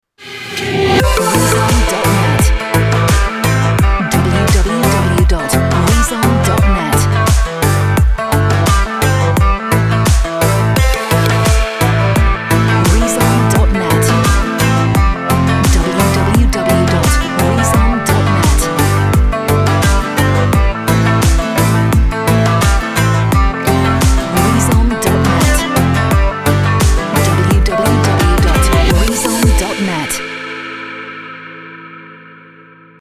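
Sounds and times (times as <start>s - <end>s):
rock dance pop music: 1.0s - 30.2s.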